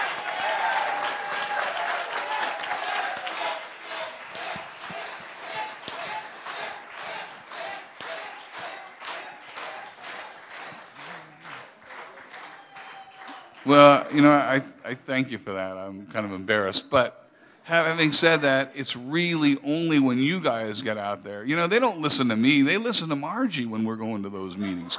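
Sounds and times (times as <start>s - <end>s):
audience standing and applauding: 0.0s - 14.5s, 24.6s - 24.9s
speech: 13.6s - 24.9s.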